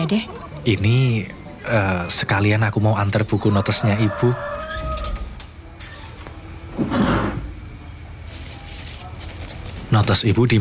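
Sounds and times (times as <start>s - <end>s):
speech: 0.1s - 5.0s, 10.0s - 10.5s
drawer sliding open: 6.7s - 7.6s
shuffling and rummaging through things: 8.2s - 10.0s.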